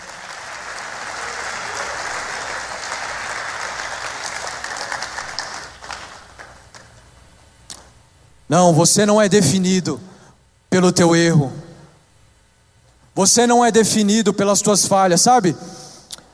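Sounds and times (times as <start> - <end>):
audience applause: 0.0 - 7.0
speech: 8.5 - 10.1, 10.8 - 11.6, 13.2 - 15.8.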